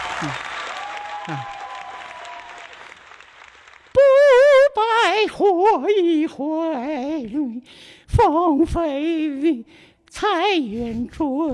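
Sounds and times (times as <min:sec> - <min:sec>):
audience applause: 0:00.0 - 0:04.0
speech: 0:00.2 - 0:00.5, 0:01.3 - 0:01.6, 0:05.2 - 0:11.5.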